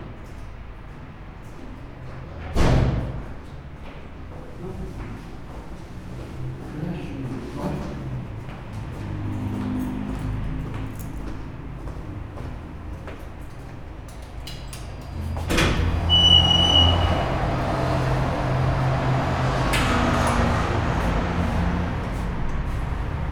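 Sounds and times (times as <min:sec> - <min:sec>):
main road traffic: 0:01.2 - 0:23.3
lift arriving in a stairwell: 0:05.8 - 0:23.3.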